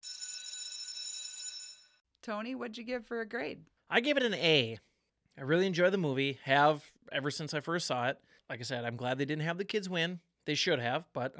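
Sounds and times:
school bell ringing: 0.0 - 2.0
speech: 2.3 - 11.3.

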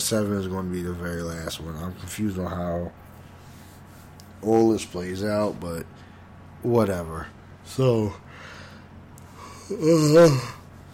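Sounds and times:
speech: 0.1 - 3.0, 4.4 - 6.0, 6.6 - 8.5, 9.7 - 10.6
person yawning with a long vocal groan: 9.4 - 10.6.

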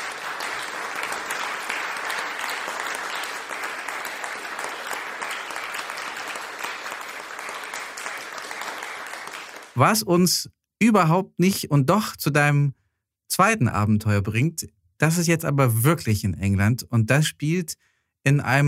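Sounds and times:
applause: 0.0 - 10.0
speech: 9.8 - 18.6.

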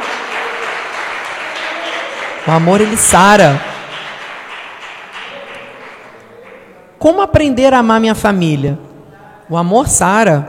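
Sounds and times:
audience applauding: 0.0 - 6.7
speech: 2.4 - 3.7, 7.0 - 8.8, 9.5 - 10.4.

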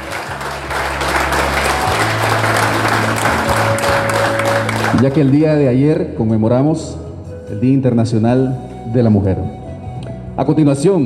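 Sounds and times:
warm applause in an auditorium: 0.0 - 5.6
speech: 5.0 - 9.6, 10.4 - 11.0.

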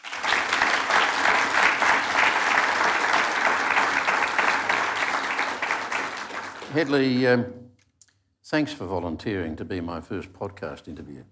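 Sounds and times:
audience applause welcoming two speakers: 0.0 - 7.2
speech: 6.8 - 7.6, 8.5 - 11.3.

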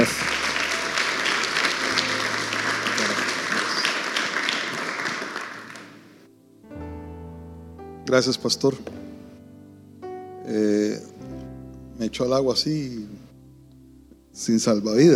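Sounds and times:
audience applause: 0.0 - 6.2
speech: 8.1 - 9.0, 12.2 - 13.2, 14.4 - 15.1.

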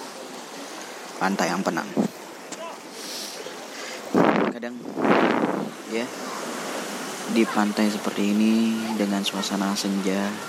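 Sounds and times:
fairly big ocean waves at a beach: 0.0 - 10.4
speech: 1.2 - 2.2, 4.6 - 6.4, 7.3 - 10.4.

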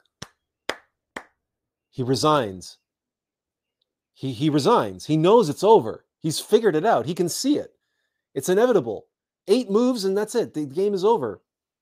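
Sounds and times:
hands clapping: 0.0 - 1.4
speech: 2.0 - 2.8, 4.2 - 7.8, 8.4 - 11.4.

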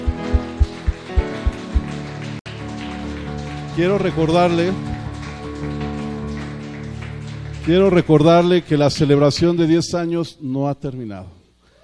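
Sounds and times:
music with thumping bass beat and keyboard chords: 0.0 - 1.9
audience applause: 0.0 - 8.8
speech: 3.8 - 4.9, 7.7 - 11.4.

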